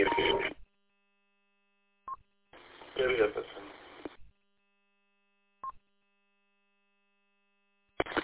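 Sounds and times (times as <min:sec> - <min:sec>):
electronic telephone tones of an incoming phone call: 0:00.0 - 0:00.5.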